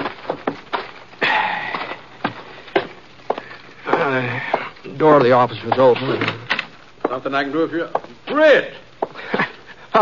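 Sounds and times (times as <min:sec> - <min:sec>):
horse hooves walking up and stopping: 0:00.0 - 0:06.4
speech: 0:05.0 - 0:06.4, 0:07.1 - 0:08.8.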